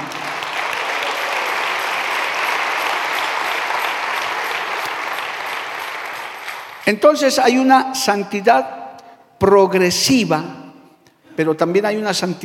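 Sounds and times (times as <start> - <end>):
audience applause: 0.0 - 6.9
speech: 6.9 - 8.8, 9.4 - 10.6, 11.4 - 12.4.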